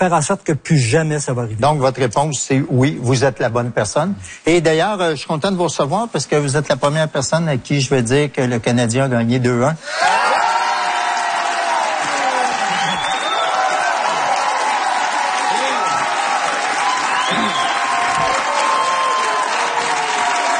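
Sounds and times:
speech: 0.0s - 10.5s
studio audience applause and cheering: 9.8s - 20.5s.

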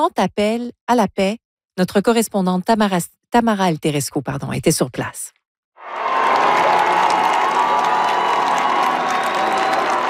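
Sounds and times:
speech: 0.0s - 5.4s
large crowd of faithful cheering and applauding the pope at an open-air mass in Metz, France: 5.8s - 10.0s.

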